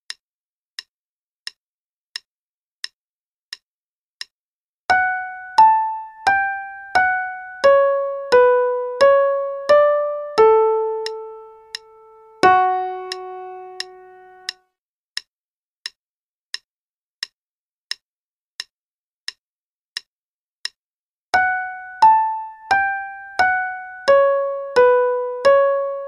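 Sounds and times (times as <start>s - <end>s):
right hand play-along music: 4.9s - 14.6s, 21.4s - 26.0s.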